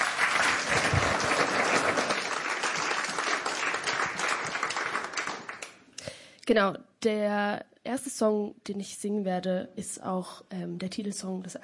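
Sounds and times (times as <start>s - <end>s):
audience applause: 0.0s - 5.8s
speech: 6.5s - 11.6s.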